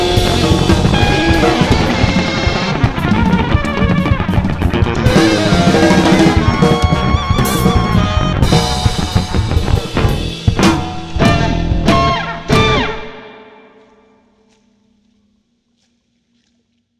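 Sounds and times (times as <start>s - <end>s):
crazy free jazz music: 0.0s - 13.2s.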